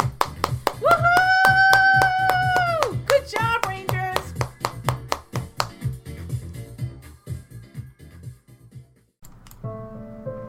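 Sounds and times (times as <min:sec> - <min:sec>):
audience applause for kids: 0:00.0 - 0:04.3.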